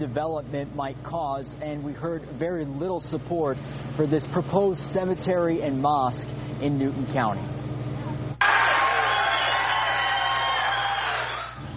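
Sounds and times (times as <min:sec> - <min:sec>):
speech: 0:00.0 - 0:07.6
loud crowd at public hearing: 0:08.4 - 0:11.7.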